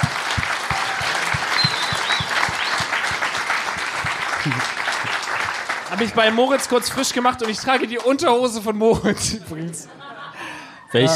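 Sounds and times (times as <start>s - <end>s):
audience applause: 0.0s - 8.7s
laughter: 4.2s - 5.0s, 8.7s - 11.1s
speech: 4.4s - 4.7s, 5.9s - 10.1s, 10.9s - 11.1s.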